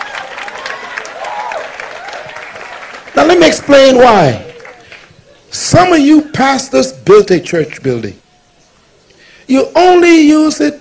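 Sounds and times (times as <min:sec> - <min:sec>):
audience clapping: 0:00.0 - 0:05.2
speech: 0:03.4 - 0:04.4, 0:05.6 - 0:08.2, 0:09.5 - 0:10.8.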